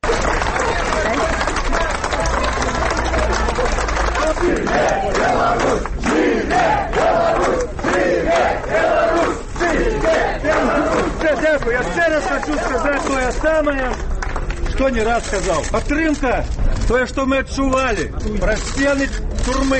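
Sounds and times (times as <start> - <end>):
scattered clapping: 0.0 - 6.2, 9.6 - 15.0
crowd cheering and chanting outside courthouse: 0.0 - 13.4
speech: 11.3 - 14.1, 14.8 - 19.7.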